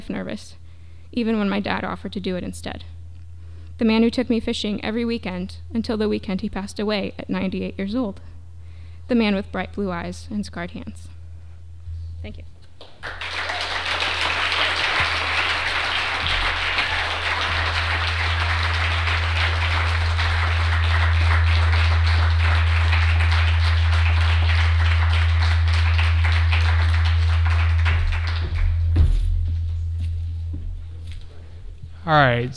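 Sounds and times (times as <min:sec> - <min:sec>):
low steady hum: 0:00.0 - 0:32.5
speech: 0:00.1 - 0:03.0, 0:03.8 - 0:08.3, 0:09.1 - 0:11.2, 0:12.2 - 0:13.2, 0:32.1 - 0:32.5
audience applause: 0:12.8 - 0:29.3.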